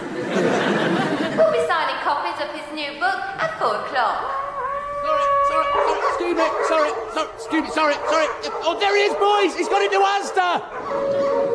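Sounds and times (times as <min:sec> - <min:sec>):
laughter: 0:00.0 - 0:01.8
speech: 0:02.8 - 0:04.4, 0:05.0 - 0:11.4
dog howling: 0:04.2 - 0:11.5
dog barking and yipping: 0:05.3 - 0:11.5.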